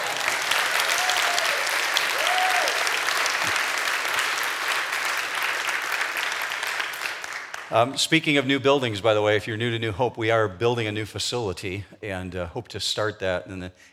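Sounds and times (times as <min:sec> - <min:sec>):
audience applause: 0:00.0 - 0:08.0
speech: 0:07.7 - 0:13.9.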